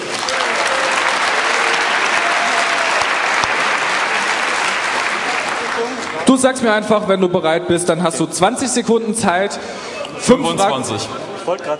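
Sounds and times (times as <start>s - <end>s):
audience applause: 0.0s - 6.3s
speech: 6.3s - 11.7s.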